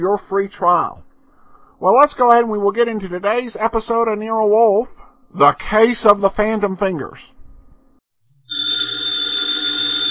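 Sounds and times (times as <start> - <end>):
speech: 0.0 - 1.1, 1.8 - 7.4
telephone bell ringing with a loud high-pitched electric ring: 8.5 - 10.0.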